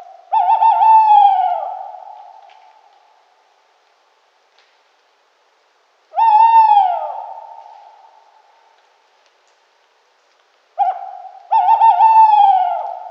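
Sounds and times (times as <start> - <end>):
Tawny owl hooting: 0.0 - 2.7, 6.1 - 8.3, 10.8 - 13.0.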